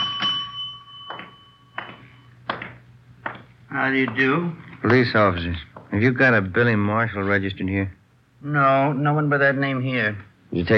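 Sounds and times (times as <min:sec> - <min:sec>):
small hotel front desk bell ringing: 0:00.0 - 0:03.4
speech: 0:03.8 - 0:10.7.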